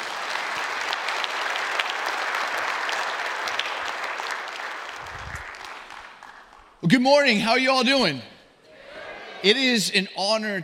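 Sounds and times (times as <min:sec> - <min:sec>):
audience clapping: 0:00.0 - 0:06.8
speech: 0:06.8 - 0:08.3, 0:09.4 - 0:10.6.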